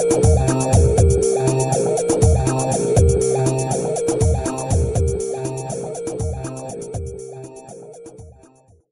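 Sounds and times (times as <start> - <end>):
acid beats: 0.0 - 8.6.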